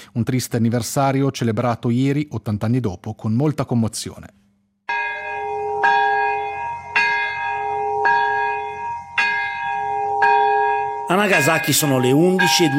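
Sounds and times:
speech: 0.1s - 4.4s, 11.1s - 12.7s
both church bells of Urakami Cathedral in Nagasaki ringing: 4.9s - 12.7s.

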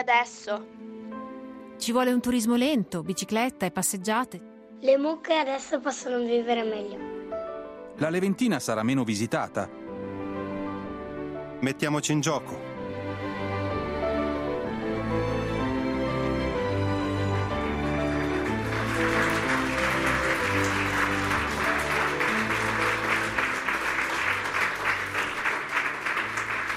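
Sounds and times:
speech: 0.0s - 0.9s, 1.8s - 7.1s, 8.0s - 9.8s, 11.6s - 12.7s
music playing: 0.0s - 26.7s
audience applause in an auditorium: 17.4s - 26.7s.

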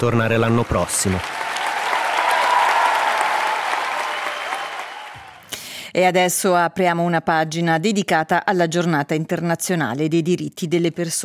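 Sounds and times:
speech: 0.0s - 1.4s, 6.0s - 11.2s
large circus audience applause: 0.0s - 5.5s.

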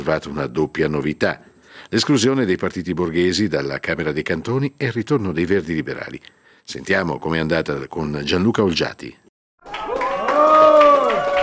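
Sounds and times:
speech: 0.0s - 9.2s
crowd applauding: 9.6s - 11.4s.

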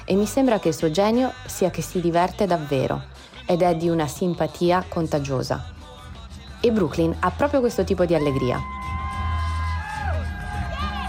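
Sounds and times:
speech: 0.1s - 5.8s, 6.6s - 8.8s
whoops and shouts: 8.1s - 11.0s
crowd cheering along the New York City Marathon route: 8.2s - 11.0s.

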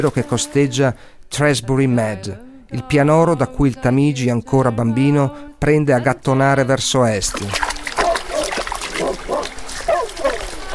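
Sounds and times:
speech: 0.0s - 7.7s
Labrador splashing in river water: 7.2s - 10.7s.

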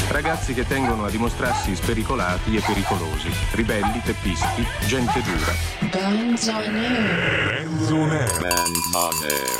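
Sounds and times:
speech: 0.1s - 9.5s
cowbells clanking: 8.3s - 9.5s.

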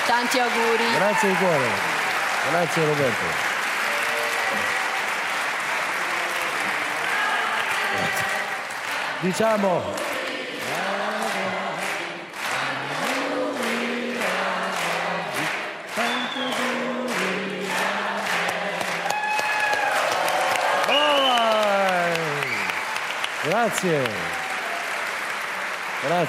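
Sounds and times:
crowd clapping enthusiastically: 0.0s - 26.2s
speech: 0.1s - 3.5s, 4.5s - 4.8s, 9.2s - 10.9s, 23.5s - 24.3s, 26.0s - 26.2s
voices whooping and calling out: 0.3s - 2.4s, 19.0s - 23.0s.

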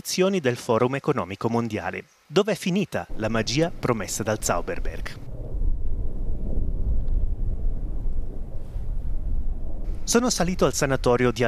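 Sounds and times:
speech: 0.0s - 5.2s, 10.1s - 11.4s
distant helicopter flying over the city: 3.1s - 11.4s.

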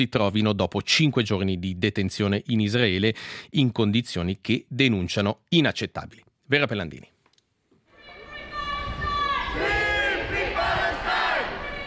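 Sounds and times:
speech: 0.0s - 7.1s
crowd cheering and chanting in airport arrivals hall: 8.0s - 11.8s.

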